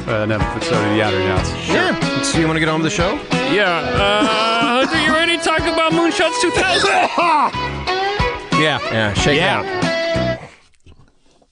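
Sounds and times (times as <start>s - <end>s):
speech: 0.1s - 8.0s, 8.6s - 10.0s
laughter: 3.6s - 7.7s
person coughing: 6.6s - 7.5s.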